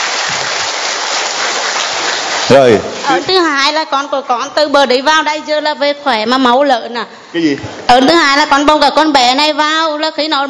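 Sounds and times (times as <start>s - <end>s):
audience applause: 0.0s - 3.0s
speech: 2.5s - 10.4s.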